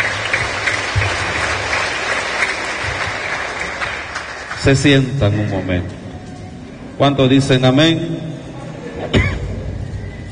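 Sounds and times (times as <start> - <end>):
audience clapping: 0.0 - 5.1
speech: 4.7 - 6.0, 7.0 - 8.3.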